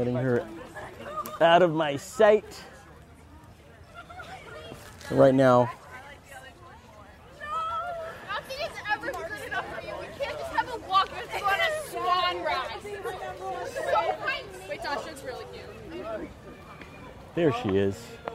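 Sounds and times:
speech: 0:00.0 - 0:00.6, 0:01.4 - 0:02.7, 0:05.1 - 0:05.8, 0:17.4 - 0:18.2
crowd chatter: 0:00.0 - 0:18.3.

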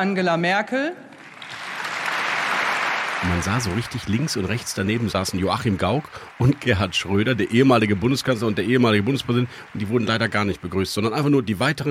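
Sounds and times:
speech: 0:00.0 - 0:01.0, 0:03.2 - 0:11.8
applause in parliament chamber: 0:01.1 - 0:11.8.

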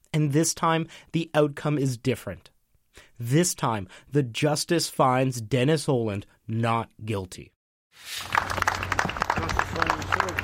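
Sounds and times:
speech: 0:00.1 - 0:02.5, 0:03.2 - 0:08.5
small crowd applauding outside a courtroom: 0:08.2 - 0:10.4.

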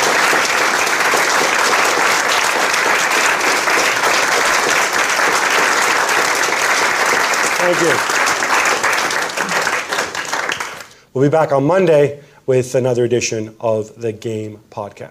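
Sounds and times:
big round of audience applause: 0:00.0 - 0:10.9
speech: 0:07.6 - 0:08.2, 0:11.2 - 0:15.0.

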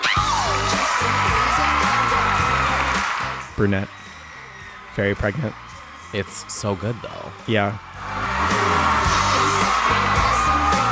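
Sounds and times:
very loud applause: 0:00.0 - 0:10.9
speech: 0:03.6 - 0:04.0, 0:05.0 - 0:08.2.

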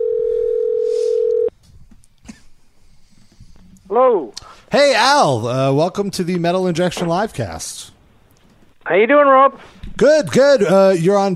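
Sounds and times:
telephone dial tone: 0:00.0 - 0:01.5
speech: 0:04.0 - 0:07.9, 0:08.9 - 0:11.3.

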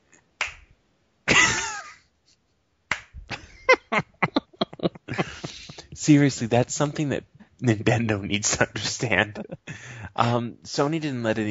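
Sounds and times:
hand claps: 0:00.4 - 0:00.7, 0:02.9 - 0:03.2
laughter: 0:03.3 - 0:05.8, 0:08.8 - 0:10.1
speech: 0:06.0 - 0:11.4.

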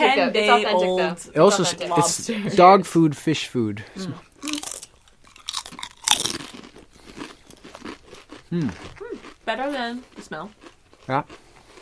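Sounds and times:
speech: 0:00.0 - 0:04.6, 0:08.5 - 0:11.4
crunching on fish-flavoured chips: 0:04.3 - 0:11.7.

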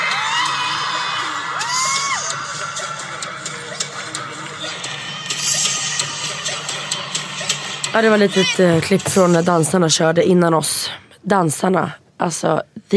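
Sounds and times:
arena crowd cheering and whooping: 0:00.0 - 0:03.2
speech: 0:07.9 - 0:12.9.

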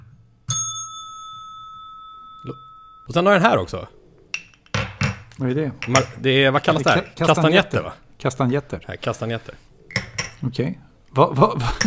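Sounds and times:
reception desk bell ringing: 0:00.5 - 0:03.2
speech: 0:02.4 - 0:04.0, 0:05.4 - 0:09.7, 0:10.4 - 0:11.8.

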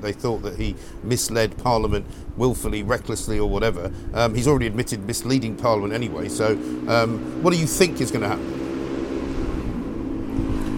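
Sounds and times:
speech: 0:00.0 - 0:08.6
motorbike riding past: 0:05.9 - 0:10.7.

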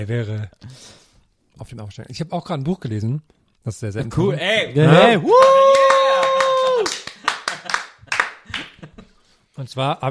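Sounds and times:
speech: 0:00.0 - 0:00.9, 0:01.6 - 0:05.8, 0:09.6 - 0:10.0
hand clapping: 0:05.3 - 0:09.0.

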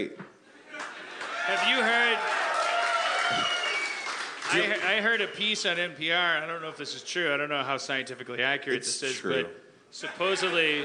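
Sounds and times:
speech: 0:00.0 - 0:00.2, 0:04.5 - 0:10.8
live audience cheering and whooping: 0:00.7 - 0:04.8.

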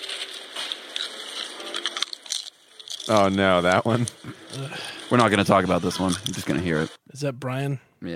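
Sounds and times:
crunching while eating: 0:00.0 - 0:05.0
speech: 0:03.1 - 0:08.1.

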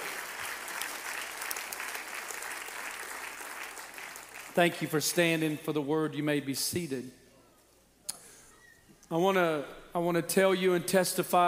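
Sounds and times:
audience clapping hands: 0:00.0 - 0:05.6
speech: 0:04.6 - 0:07.2, 0:09.1 - 0:11.4.

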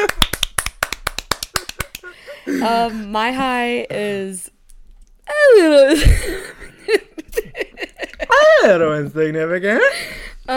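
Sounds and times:
hand clapping: 0:00.0 - 0:02.2
speech: 0:02.5 - 0:04.6, 0:05.6 - 0:07.0, 0:08.6 - 0:10.5
laughter: 0:05.9 - 0:08.8.

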